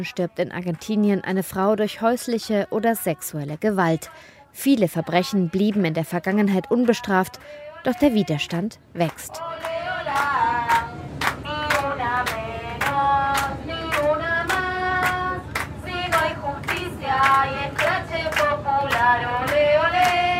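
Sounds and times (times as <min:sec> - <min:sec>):
speech: 0:00.0 - 0:09.8
train passengers chanting and singing: 0:02.4 - 0:20.3
train passengers clapping: 0:09.0 - 0:20.3.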